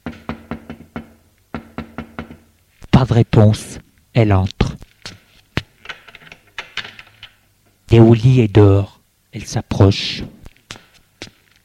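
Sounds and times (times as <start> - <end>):
knocking on a bedroom door: 0.0 - 2.4
speech: 3.0 - 4.7, 7.9 - 10.4.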